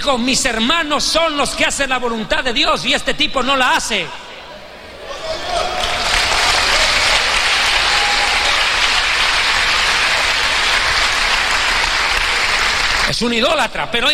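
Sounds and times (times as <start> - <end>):
speech: 0.0 - 4.2, 13.2 - 14.1
large crowd applauding: 5.1 - 13.1.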